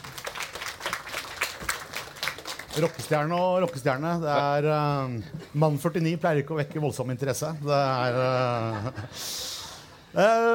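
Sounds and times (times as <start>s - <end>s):
audience applause: 0.0s - 4.1s
speech: 2.8s - 9.4s, 10.1s - 10.5s
laughter: 8.0s - 9.9s.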